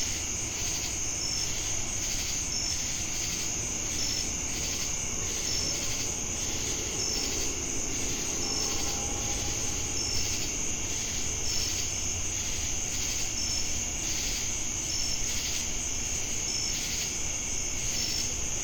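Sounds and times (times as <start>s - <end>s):
crickets trilling in Jamestown, North Carolina: 0.0s - 18.6s.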